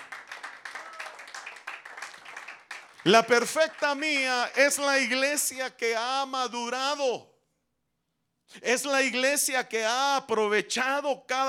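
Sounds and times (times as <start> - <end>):
congregation clapping during a church service: 0.0 - 5.6
speech: 3.0 - 7.3, 8.5 - 11.4.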